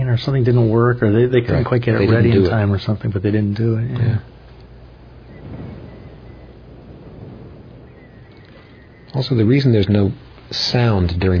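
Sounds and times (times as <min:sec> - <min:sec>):
wind blowing: 0:00.0 - 0:11.3
speech: 0:00.1 - 0:04.3, 0:09.2 - 0:11.3.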